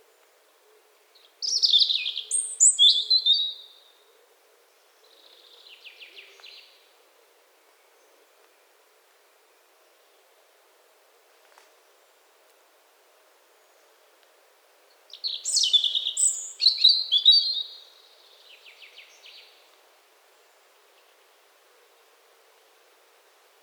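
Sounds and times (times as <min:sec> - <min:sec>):
European robin song: 0:01.4 - 0:03.8, 0:15.1 - 0:19.6.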